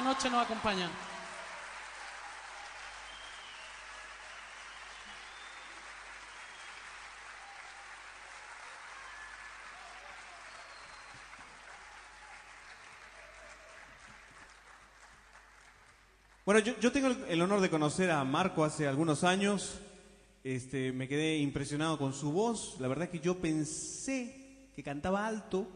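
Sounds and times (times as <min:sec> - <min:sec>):
speech: 0:00.0 - 0:01.1, 0:16.5 - 0:25.7
audience applause for the musicians: 0:00.0 - 0:16.4.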